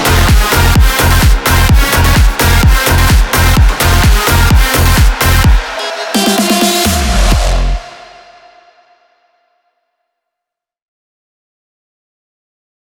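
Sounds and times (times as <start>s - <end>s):
chaotic drumming: 0.0s - 8.6s.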